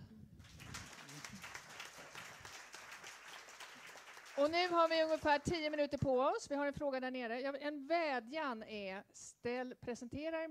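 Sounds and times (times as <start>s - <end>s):
audience applause: 0.4s - 5.5s
speech: 4.4s - 10.4s.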